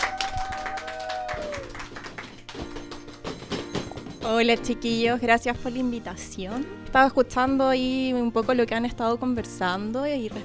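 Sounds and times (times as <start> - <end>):
people clapping: 0.0 - 3.5
speech: 4.3 - 10.4.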